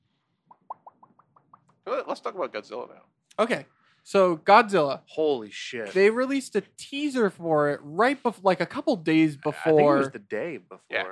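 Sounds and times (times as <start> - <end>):
bubble bursting pop sound effect: 0.5 - 1.7
speech: 1.9 - 11.1.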